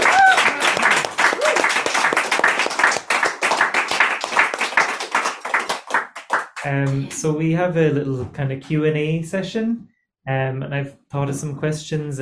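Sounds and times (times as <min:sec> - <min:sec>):
vocal whoop: 0:00.0 - 0:01.7
crowd applauding: 0:00.0 - 0:07.0
speech: 0:06.7 - 0:12.2.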